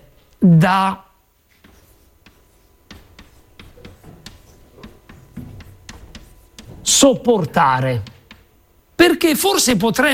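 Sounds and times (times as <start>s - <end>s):
speech: 0.4s - 1.1s, 6.9s - 8.1s, 9.0s - 10.1s
writing tool taps and scratches: 1.5s - 8.6s.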